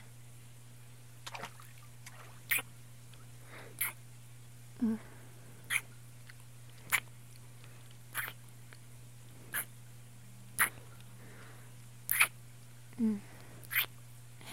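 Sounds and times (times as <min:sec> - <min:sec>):
wet noises: 0:01.2 - 0:02.7, 0:03.8 - 0:04.0, 0:05.7 - 0:07.2, 0:08.1 - 0:08.5, 0:09.5 - 0:09.7, 0:10.6 - 0:11.1, 0:12.1 - 0:12.4, 0:13.6 - 0:13.9.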